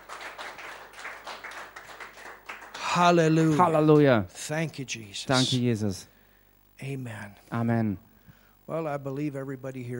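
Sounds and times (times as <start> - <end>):
audience applause: 0.0 - 3.6
speech: 2.9 - 6.1, 6.8 - 8.1, 8.7 - 9.9.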